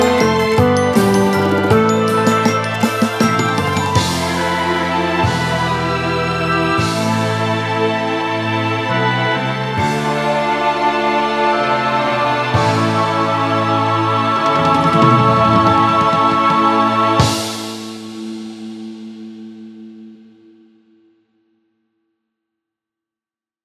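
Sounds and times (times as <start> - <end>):
orchestra playing: 0.0 - 17.4
piano: 0.0 - 19.2.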